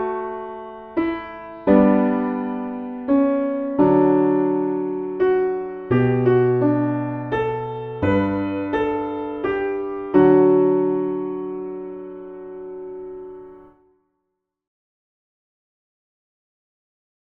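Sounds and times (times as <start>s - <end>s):
piano backing: 0.0s - 13.8s.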